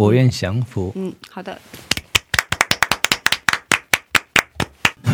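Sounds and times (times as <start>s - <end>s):
speech: 0.0s - 1.9s
applause: 1.9s - 5.0s.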